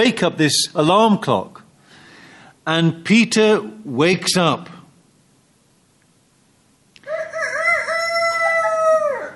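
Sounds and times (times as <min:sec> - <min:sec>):
speech: 0:00.0 - 0:01.6, 0:02.6 - 0:04.8
rooster crowing: 0:07.0 - 0:09.3.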